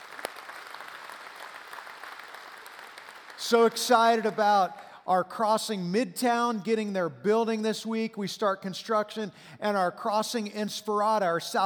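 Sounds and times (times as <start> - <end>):
church service audience applauding to welcome those joining: 0.0 - 3.8
speech: 3.4 - 11.6.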